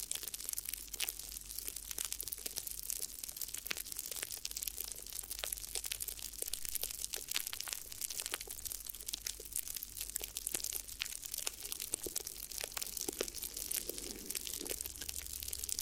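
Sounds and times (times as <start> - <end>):
crinkly crackling and crumpling ear massage: 0.3 - 15.7
low hum: 11.1 - 15.7
smooth swish: 11.6 - 15.4.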